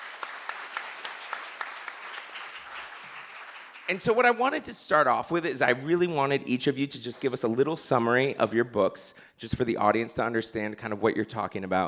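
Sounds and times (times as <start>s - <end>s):
audience applause: 0.0s - 4.2s
speech: 3.9s - 11.8s.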